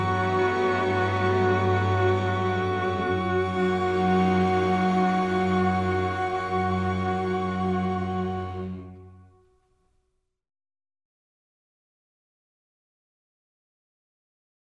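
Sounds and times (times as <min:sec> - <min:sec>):
strings playing a chorale: 0:00.0 - 0:09.4.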